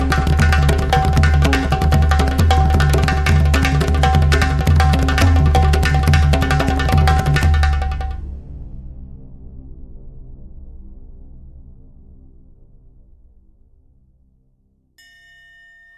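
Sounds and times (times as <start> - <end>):
instrumental music: 0.0 - 8.4.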